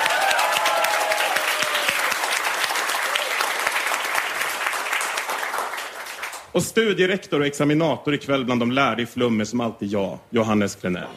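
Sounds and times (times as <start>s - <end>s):
audience applause: 0.0s - 6.5s
speech: 6.6s - 11.1s.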